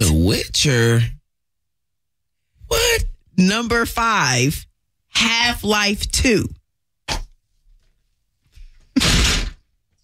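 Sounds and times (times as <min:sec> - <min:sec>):
speech: 0:00.0 - 0:01.2, 0:02.7 - 0:06.6
person kicking a chair: 0:09.0 - 0:09.6.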